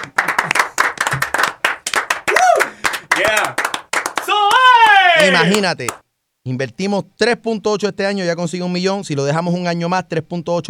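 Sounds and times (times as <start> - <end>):
applause: 0.0 - 6.0
speech: 5.2 - 10.6.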